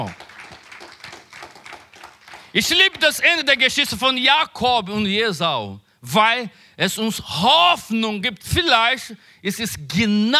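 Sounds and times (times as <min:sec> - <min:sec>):
speech: 0:00.0 - 0:00.2, 0:02.5 - 0:10.3
audience applause: 0:00.0 - 0:02.7.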